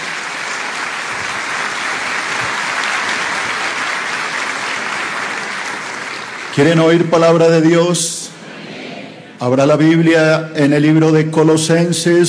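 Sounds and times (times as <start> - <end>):
audience applause: 0.0 - 6.6
speech: 6.6 - 8.2, 9.4 - 12.2.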